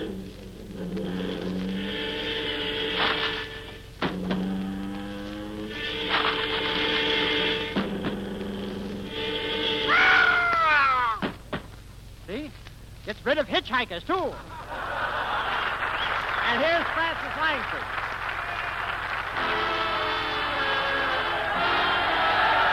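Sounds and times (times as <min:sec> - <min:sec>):
automobile with buzz saw starting up: 0:00.0 - 0:11.2, 0:19.2 - 0:22.6
speech: 0:13.8 - 0:14.5, 0:16.6 - 0:18.0
laughter: 0:14.2 - 0:19.3.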